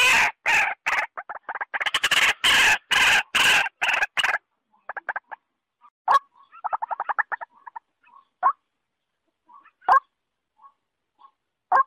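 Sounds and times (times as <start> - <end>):
waterhen-type calls: 0.0 - 5.4, 6.1 - 8.7.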